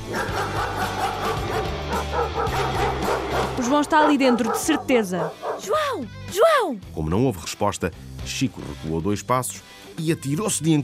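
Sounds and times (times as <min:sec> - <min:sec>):
dog barking furiously: 0:00.0 - 0:06.0
speech: 0:03.7 - 0:10.8.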